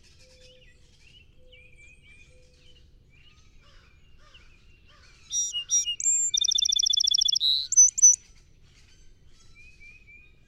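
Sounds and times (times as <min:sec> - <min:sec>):
Song Sparrow song: 0:00.2 - 0:08.3.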